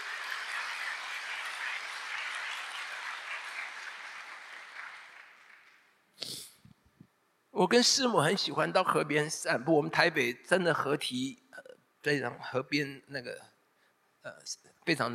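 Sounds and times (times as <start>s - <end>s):
audience applause: 0.0s - 6.0s
speech: 7.6s - 11.4s, 12.0s - 13.5s, 14.2s - 15.1s.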